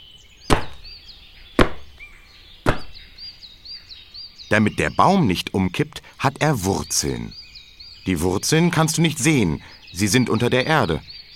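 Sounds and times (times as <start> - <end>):
feet stamping hard on the floor: 0.5 - 0.8, 1.6 - 1.9, 2.7 - 2.9
speech: 4.5 - 7.4, 8.0 - 11.1.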